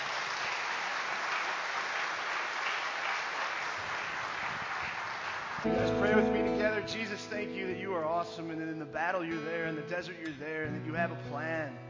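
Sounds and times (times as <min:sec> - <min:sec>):
audience applause: 0:00.0 - 0:06.0
speech: 0:05.6 - 0:11.8.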